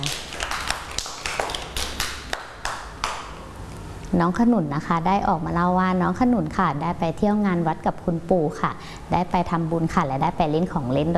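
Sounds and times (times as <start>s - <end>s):
group of children clapping: 0.0s - 3.4s
speech: 4.2s - 11.1s.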